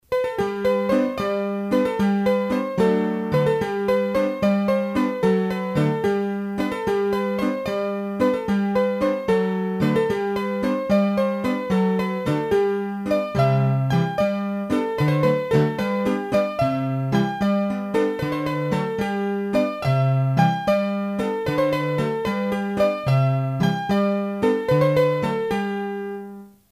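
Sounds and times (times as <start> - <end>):
bourree played on hurdy-gurdy: 0.5 - 25.6.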